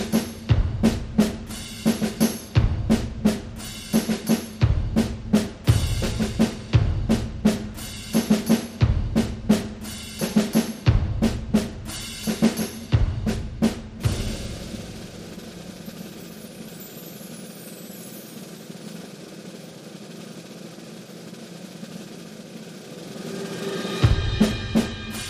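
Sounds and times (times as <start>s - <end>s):
rhythm track: 0.0s - 17.4s, 23.0s - 25.2s.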